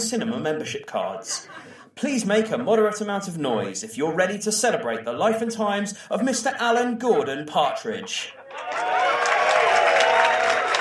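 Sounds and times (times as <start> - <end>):
speech: 0.1 - 9.1
audience applause: 8.4 - 10.8.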